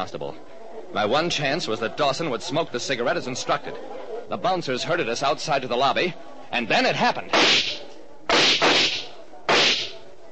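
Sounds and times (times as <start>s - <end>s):
speech: 0.0s - 7.8s
gunshot sound effects fired at a lobby ceiling in an old radio drama: 7.3s - 10.0s.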